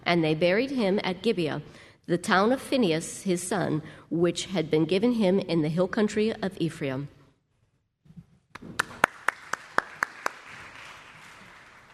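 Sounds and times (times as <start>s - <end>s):
speech: 0.1s - 7.2s
loud evenly spaced claps: 8.5s - 11.9s
audience applause: 8.6s - 11.9s.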